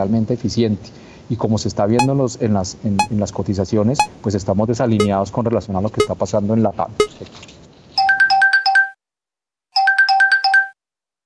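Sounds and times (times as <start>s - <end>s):
speech: 0.0s - 7.5s
bright electronic bell signalling time up: 8.0s - 8.9s, 9.8s - 10.7s.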